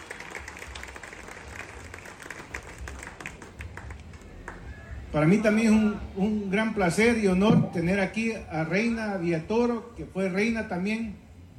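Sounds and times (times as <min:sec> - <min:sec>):
audience applause: 0:00.0 - 0:04.8
speech: 0:05.1 - 0:11.2.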